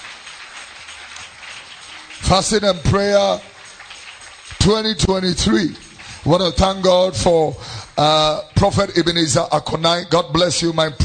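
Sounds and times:
audience clapping: 0.0s - 9.3s
speech: 2.2s - 3.6s, 4.6s - 11.0s.

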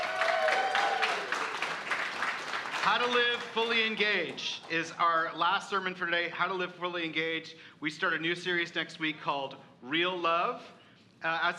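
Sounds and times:
audience applause and cheering: 0.0s - 4.4s
speech: 2.8s - 11.5s.

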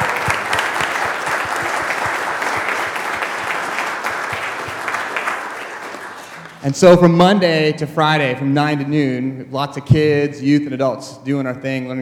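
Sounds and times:
round of applause: 0.0s - 6.8s
speech: 6.6s - 12.0s.

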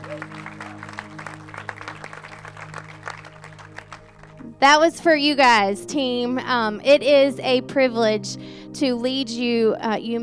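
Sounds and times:
audience round of applause: 0.0s - 4.5s
speech: 4.6s - 10.2s.

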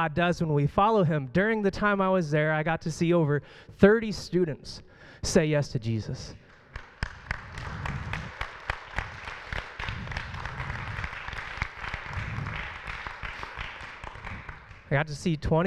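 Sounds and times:
speech: 0.0s - 6.4s, 14.9s - 15.6s
audience clapping: 6.4s - 15.6s.

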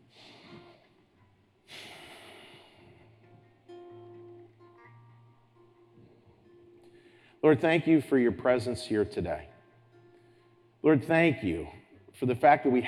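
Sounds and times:
deep breath drawn in before a prayer: 0.0s - 0.9s, 1.6s - 3.4s, 6.2s - 7.4s
soft breathy sounds: 0.0s - 3.9s, 5.8s - 7.5s
speech: 7.4s - 9.5s, 10.8s - 12.8s.

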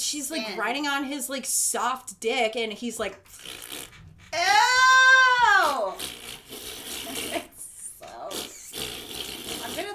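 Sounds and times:
speech: 0.1s - 7.5s
mouth imitation of wet farts: 3.2s - 9.9s.

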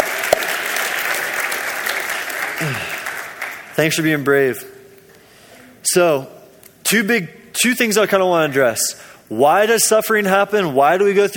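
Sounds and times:
audience clapping: 0.0s - 4.2s
speech: 2.6s - 3.0s, 3.8s - 4.7s, 5.8s - 11.3s.

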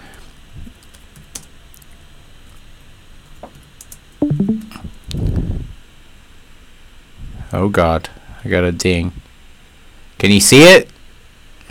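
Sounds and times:
fingers typing on a computer keyboard: 0.7s - 1.9s
speech: 7.6s - 9.2s, 10.2s - 10.9s.

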